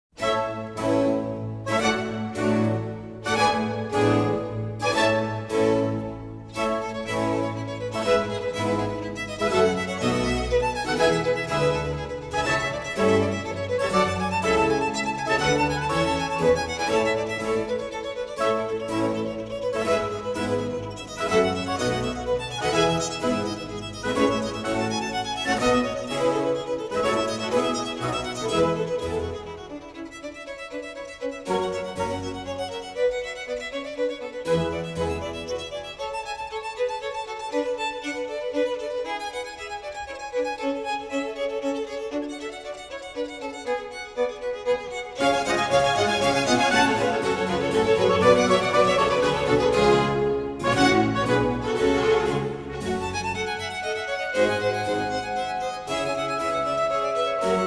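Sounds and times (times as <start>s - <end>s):
concerto grosso in B flat major vivace: 0.0s - 57.6s.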